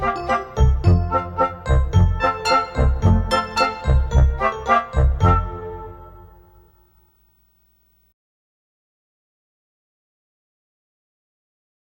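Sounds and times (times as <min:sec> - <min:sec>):
instrumental music: 0:00.0 - 0:07.2.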